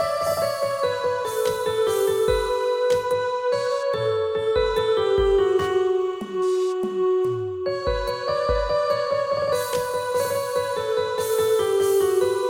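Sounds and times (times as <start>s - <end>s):
keyboard: 0.0s - 12.4s.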